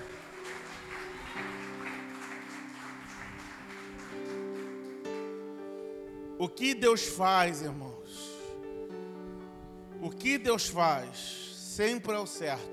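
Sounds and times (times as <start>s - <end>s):
audience applauding: 0.0s - 7.0s
sustained keyboard chords: 0.0s - 12.7s
speech: 6.4s - 8.2s, 10.2s - 12.7s.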